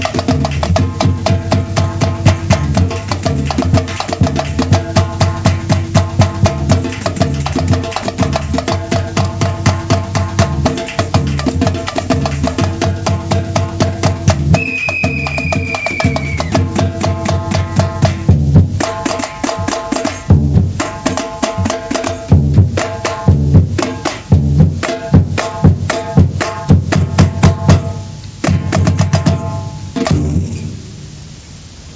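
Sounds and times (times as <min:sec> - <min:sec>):
samba ending break: 0:00.0 - 0:31.3.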